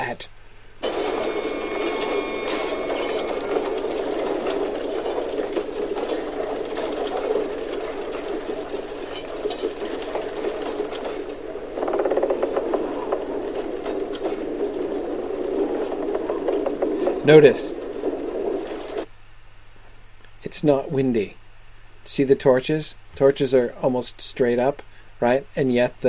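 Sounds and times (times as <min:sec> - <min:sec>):
speech: 0:00.1 - 0:00.4, 0:17.3 - 0:17.8, 0:20.6 - 0:21.4, 0:22.1 - 0:26.0
huge gears and wheels turning: 0:00.8 - 0:19.1.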